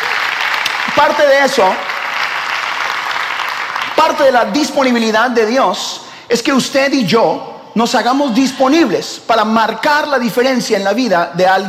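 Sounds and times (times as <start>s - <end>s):
applause: 0.0s - 4.8s
speech: 1.0s - 1.9s, 4.0s - 11.6s.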